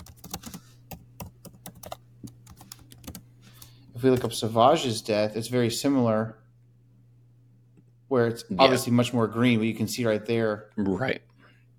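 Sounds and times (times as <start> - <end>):
faint typing on a computer keyboard: 0.0 - 3.7
speech: 4.0 - 6.4, 8.1 - 11.3.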